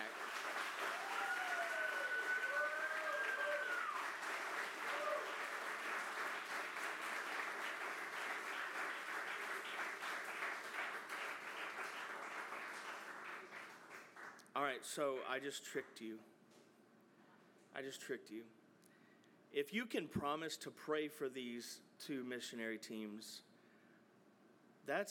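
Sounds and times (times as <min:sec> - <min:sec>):
audience round of applause: 0:00.0 - 0:14.4
speech: 0:14.8 - 0:16.3, 0:17.8 - 0:18.6, 0:19.5 - 0:23.5, 0:24.8 - 0:25.0.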